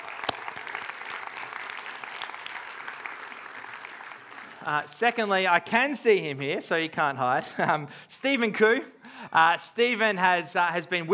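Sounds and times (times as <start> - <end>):
round of applause from audience: 0.0 - 4.7
speech: 4.6 - 11.1.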